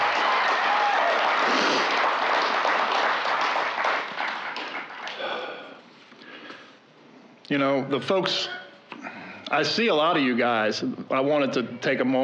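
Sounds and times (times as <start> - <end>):
crowd applause: 0.0 - 5.7
speech: 7.5 - 8.6, 9.5 - 12.2.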